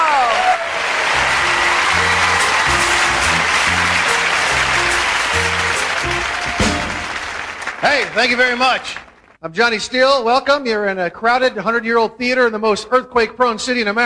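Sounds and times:
audience applause and cheering welcoming a comedian in a crowded theater: 0.0 - 9.4
speech: 7.9 - 14.0.

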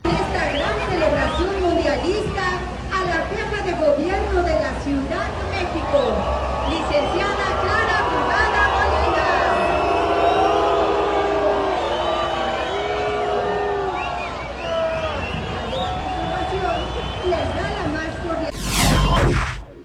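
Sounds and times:
large crowd at a World Cup celebration in Mexico City jeering: 0.0 - 19.6
loud burst of noise: 18.5 - 19.8.

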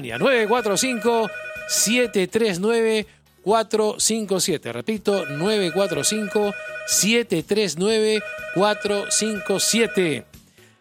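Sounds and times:
telephone ringing with an incoming call to a call-in show: 0.0 - 2.2, 5.2 - 7.2, 8.0 - 10.2
speech: 0.0 - 10.4.

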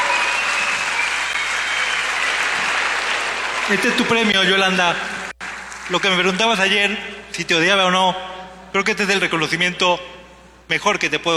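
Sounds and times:
audience applause: 0.0 - 7.5
speech: 3.7 - 5.2, 5.9 - 10.1, 10.7 - 11.3.

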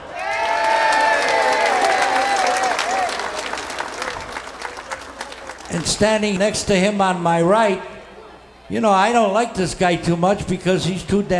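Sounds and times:
crowd applauding: 0.0 - 6.4
crowd cheering: 0.0 - 8.6
speech: 5.8 - 7.9, 8.7 - 11.3.

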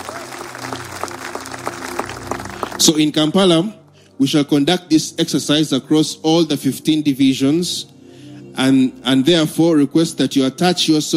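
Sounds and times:
congregation clapping hands at a religious gathering: 0.0 - 3.2
speech: 2.8 - 7.9, 8.6 - 11.1.

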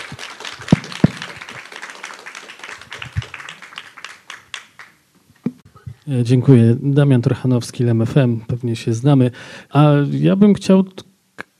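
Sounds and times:
audience applause: 0.0 - 5.0
speech: 6.1 - 11.1.

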